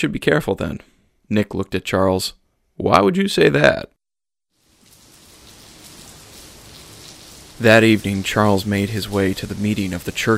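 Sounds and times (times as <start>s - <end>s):
speech: 0.0s - 4.0s, 7.6s - 10.3s
wind and rain: 4.6s - 10.3s.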